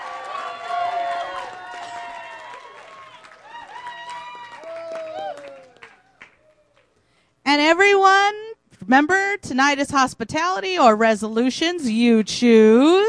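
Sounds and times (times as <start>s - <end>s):
whoops and cheering voices: 0.0s - 6.9s
crowd applauding: 0.0s - 7.0s
speech: 7.7s - 13.0s.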